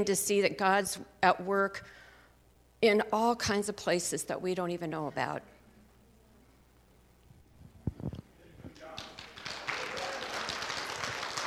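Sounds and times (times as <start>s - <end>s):
speech: 0.0s - 2.0s, 2.8s - 5.5s
audience applause: 8.8s - 11.4s.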